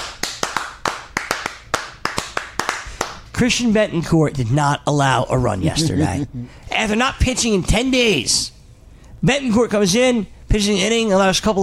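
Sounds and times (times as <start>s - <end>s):
hands clapping: 0.0s - 3.5s
speech: 3.4s - 8.6s, 9.2s - 11.6s.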